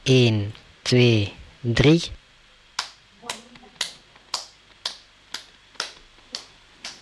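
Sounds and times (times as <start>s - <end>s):
speech: 0.1s - 2.2s
group clapping hands: 2.7s - 7.0s.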